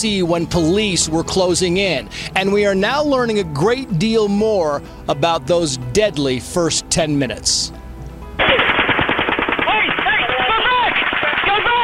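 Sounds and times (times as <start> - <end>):
speech: 0.0 - 7.8
rapid automatic gunfire from the Las Vegas attack, recorded on a police body camera: 8.4 - 11.8.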